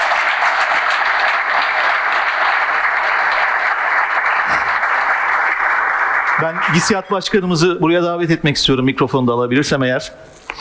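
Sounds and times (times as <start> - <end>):
audience applause: 0.0 - 7.7
speech: 6.4 - 10.3.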